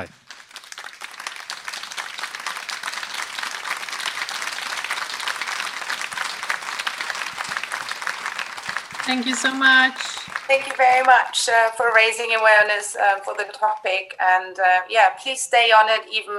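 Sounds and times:
speech: 0.0 - 0.2, 9.1 - 16.3
audience applause: 0.0 - 12.8.

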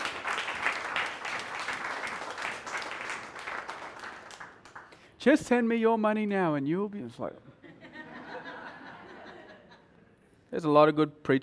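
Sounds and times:
audience clapping: 0.0 - 5.2
speech: 5.2 - 7.6, 10.5 - 11.4
laughter: 7.6 - 10.2.

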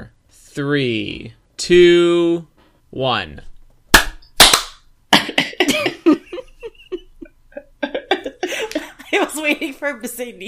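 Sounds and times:
speech: 0.3 - 3.5, 9.1 - 10.4
hand claps on a countdown: 4.0 - 4.8
laughter and giggling voices: 5.2 - 9.8.

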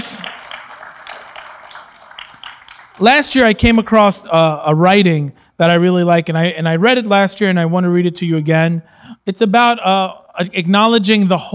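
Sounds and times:
audience applause: 0.0 - 3.8
speech: 3.0 - 11.5.

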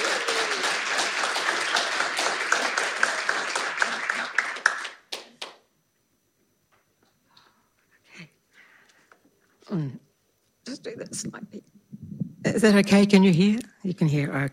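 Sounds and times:
audience applause welcoming a speaker: 0.0 - 5.6
speech: 9.7 - 10.0, 10.8 - 11.8, 12.4 - 14.5.

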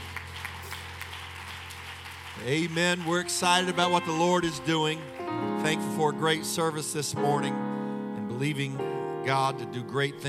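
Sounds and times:
crowd clapping: 0.0 - 6.4
speech: 2.4 - 7.7, 8.4 - 10.2.

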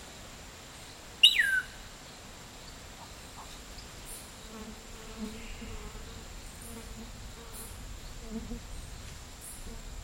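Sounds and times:
high insect whine in a dry forest: 0.0 - 10.0
sharp bird call: 1.2 - 1.8.

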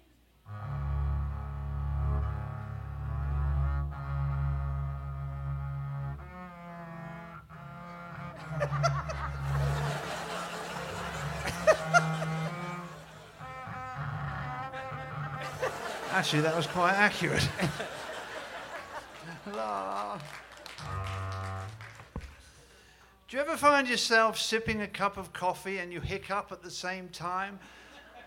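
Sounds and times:
bass guitar imitating Scottish bagpipe music: 0.5 - 10.1, 10.8 - 15.6, 20.8 - 21.8
laughter: 8.2 - 21.6, 27.9 - 28.2
speech: 16.2 - 18.0, 19.6 - 20.4, 23.3 - 27.8.

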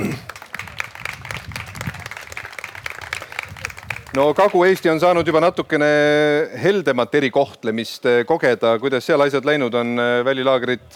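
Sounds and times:
audience applause: 0.0 - 4.6
speech: 4.2 - 10.9.

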